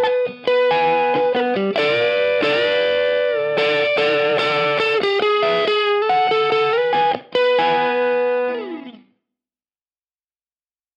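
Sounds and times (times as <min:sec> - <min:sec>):
electric guitar with three 6K pickups through a Marshall Plexi amplifier: 0:00.0 - 0:09.0.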